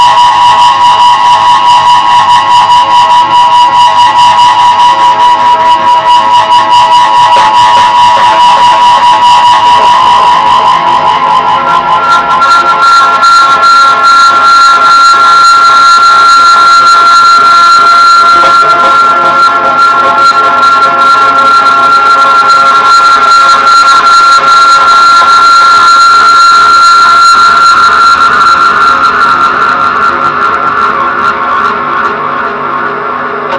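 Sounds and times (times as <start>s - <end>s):
noise: 0.0s - 33.5s.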